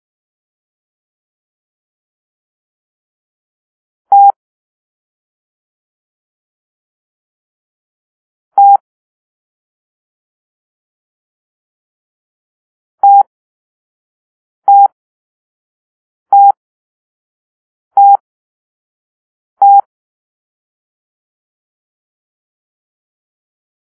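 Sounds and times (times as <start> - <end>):
Morse code letter T tones: 4.1 - 4.3, 13.0 - 13.3, 14.7 - 14.9, 16.3 - 16.6, 18.0 - 18.2, 19.6 - 19.8.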